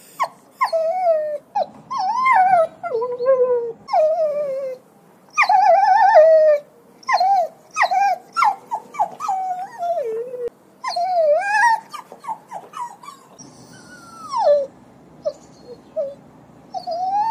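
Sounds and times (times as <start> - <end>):
dog whining and yelping: 0.0 - 17.2.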